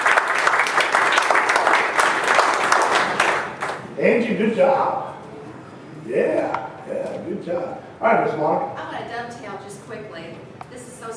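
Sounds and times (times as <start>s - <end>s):
audience applause: 0.0s - 3.9s
speech: 4.1s - 5.1s, 6.1s - 6.5s, 7.4s - 8.8s.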